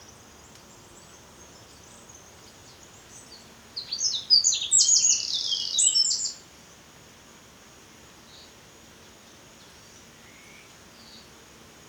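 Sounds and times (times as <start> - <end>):
Eurasian wren song: 3.8 - 6.4.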